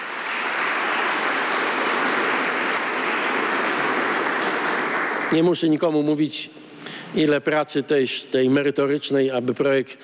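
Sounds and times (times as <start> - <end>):
audience applause: 0.0 - 6.0
speech: 5.3 - 10.0.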